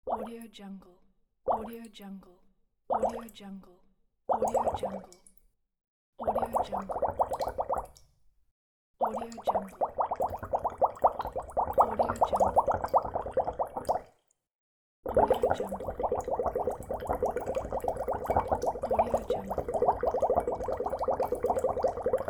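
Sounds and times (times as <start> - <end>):
bubbles: 4.3 - 5.2, 6.2 - 8.0, 9.0 - 14.1, 15.1 - 22.2.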